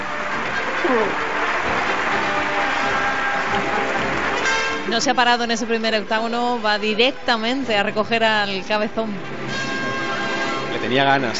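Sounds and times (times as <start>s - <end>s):
audience ovation applause: 0.0s - 5.1s
speech: 0.8s - 1.4s, 4.8s - 9.8s, 10.8s - 11.3s.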